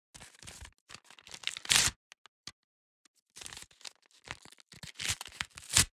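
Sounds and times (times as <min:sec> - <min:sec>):
paper tearing off: 0:01.4 - 0:01.9, 0:04.9 - 0:05.9.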